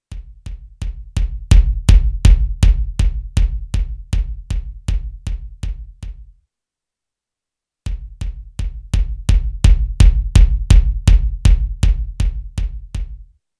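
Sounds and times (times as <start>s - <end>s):
kick drum: 0.0s - 6.4s, 7.9s - 13.4s.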